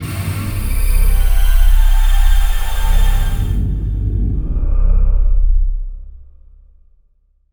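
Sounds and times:
synth pads: 0.0s - 5.7s.

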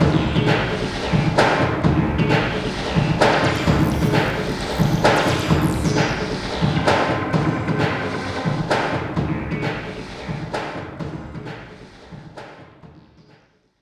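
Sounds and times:
industrial techno: 0.0s - 13.3s.

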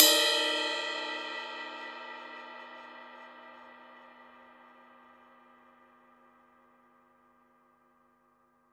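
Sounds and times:
deep house cymbal single hits: 0.0s - 6.2s.

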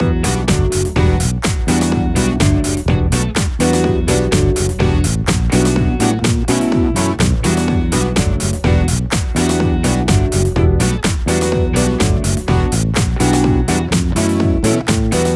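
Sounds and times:
nu disco full mix in E minor: 0.0s - 15.3s.

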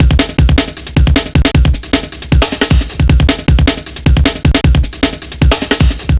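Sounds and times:
breakbeat drums: 0.0s - 6.1s.

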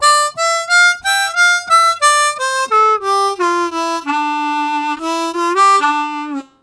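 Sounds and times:
slow walk harmonica riffs: 0.0s - 6.6s.

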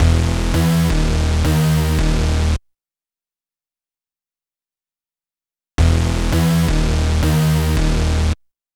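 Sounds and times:
synth drum and bass music: 0.0s - 2.6s, 5.8s - 8.4s.

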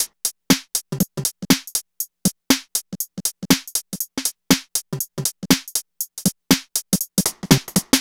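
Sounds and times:
NRG trance drum break: 0.0s - 7.9s.

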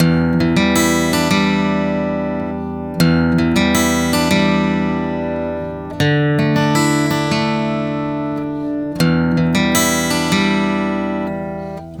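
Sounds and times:
acoustic guitar arpeggio: 0.0s - 11.9s.

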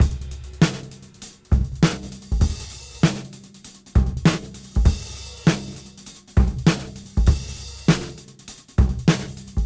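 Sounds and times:
cymbal beat at 99 BPM: 0.0s - 8.2s.

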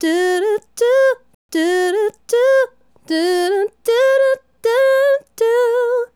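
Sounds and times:
female solo hip-hop and RnB vocals: 0.0s - 6.1s.

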